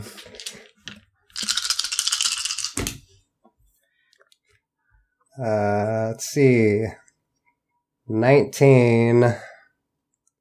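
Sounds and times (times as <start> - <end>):
dice being rolled: 0.1 - 3.0
speech: 5.4 - 7.0, 8.1 - 9.5.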